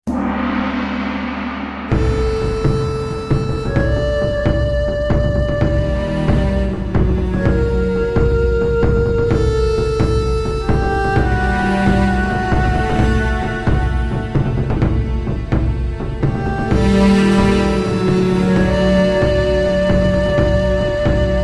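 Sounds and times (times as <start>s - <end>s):
Egyptian strings and percussion: 0.0s - 21.4s.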